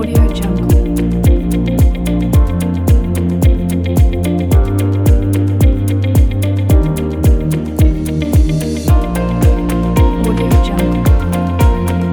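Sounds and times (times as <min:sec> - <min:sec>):
happy corporate music kit: 0:00.0 - 0:12.1.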